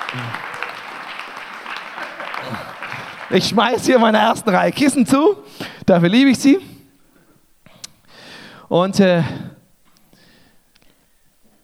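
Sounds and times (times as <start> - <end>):
crowd clapping: 0.0 - 5.0
speech: 0.1 - 0.5, 3.3 - 6.7, 8.7 - 9.4.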